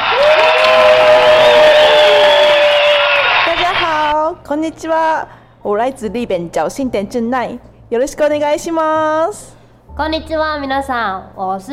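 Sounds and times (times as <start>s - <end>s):
high-pitched whoop: 0.0s - 4.0s
audience applauding: 0.0s - 4.1s
speech: 4.5s - 11.7s.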